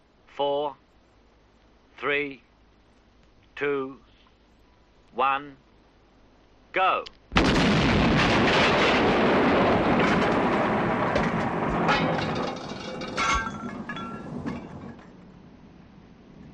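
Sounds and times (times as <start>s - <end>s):
speech: 0.4s - 0.8s, 2.0s - 2.5s, 3.6s - 4.0s, 5.2s - 5.6s, 6.8s - 7.2s
explosion blowing doors off: 7.3s - 15.2s.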